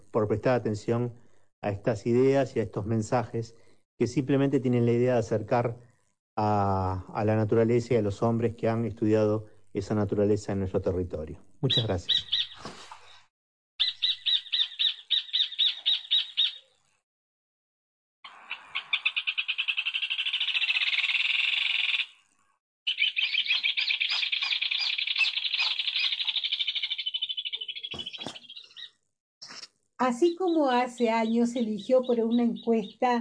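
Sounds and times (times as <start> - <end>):
speech: 0.1 - 12.8, 30.1 - 33.1
rufous hornero singing, Argentina's national bird: 11.6 - 12.6, 13.8 - 16.8, 18.3 - 22.3, 22.9 - 29.0, 30.0 - 33.1.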